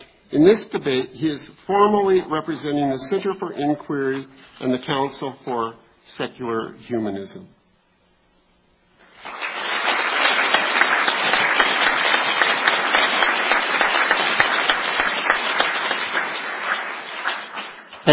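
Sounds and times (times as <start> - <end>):
speech: 0.3 - 7.6
audience applause: 9.0 - 18.1.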